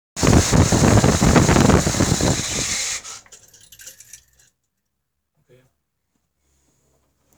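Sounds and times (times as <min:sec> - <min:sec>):
Ro80 car engine switching off: 0:00.2 - 0:03.9.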